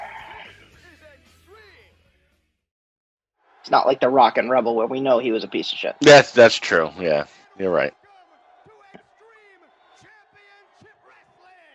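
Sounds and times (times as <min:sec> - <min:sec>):
hyped wrestling crowd cheering at start of taping: 0:03.4 - 0:11.7
speech: 0:03.7 - 0:08.0.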